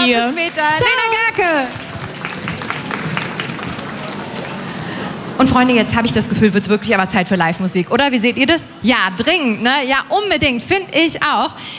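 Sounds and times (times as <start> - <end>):
loud audience applause: 0.0 - 5.4
speech: 0.1 - 1.8, 5.4 - 11.7.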